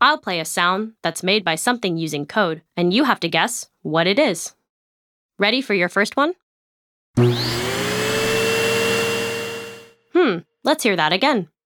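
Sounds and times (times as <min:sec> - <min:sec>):
speech: 0:00.1 - 0:04.6, 0:05.4 - 0:06.4, 0:07.2 - 0:07.6, 0:10.3 - 0:11.5
robot vacuum cleaner running: 0:07.2 - 0:09.9.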